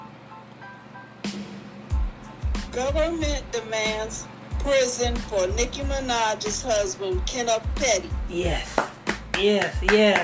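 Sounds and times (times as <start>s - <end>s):
speech: 2.8s - 10.2s
hands clapping: 8.6s - 10.2s.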